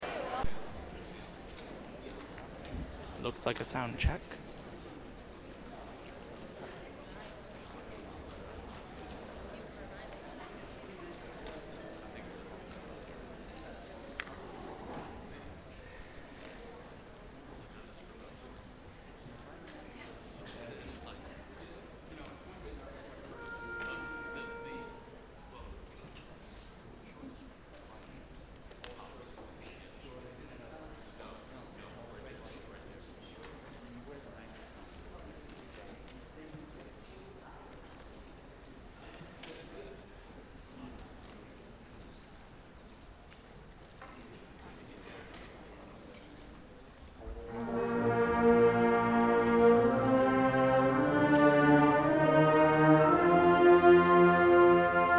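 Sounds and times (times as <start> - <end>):
instrumental music: 23.3 - 25.1, 47.3 - 55.1.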